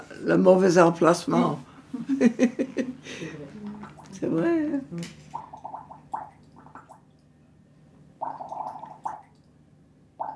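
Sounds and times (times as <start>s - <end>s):
speech: 0.2s - 3.4s, 4.2s - 5.2s
blowing bubbles in water: 3.7s - 4.2s, 5.3s - 7.1s, 8.2s - 9.3s, 10.2s - 10.3s.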